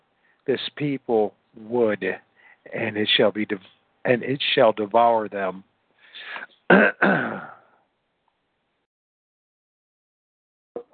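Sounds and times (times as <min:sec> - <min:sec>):
speech: 0:00.5 - 0:07.6
throat clearing: 0:06.2 - 0:07.7.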